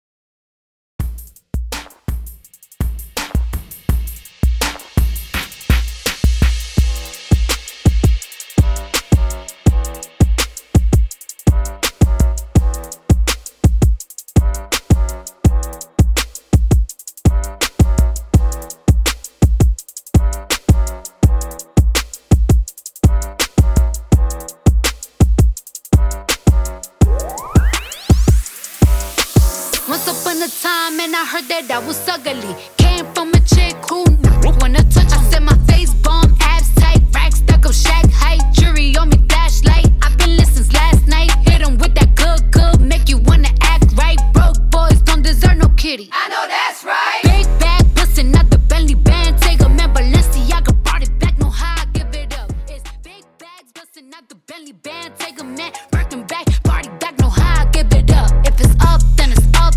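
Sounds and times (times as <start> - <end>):
ReDrum drum machine beat: 1.0 - 31.8, 32.8 - 45.9, 47.2 - 53.1, 55.2 - 59.7.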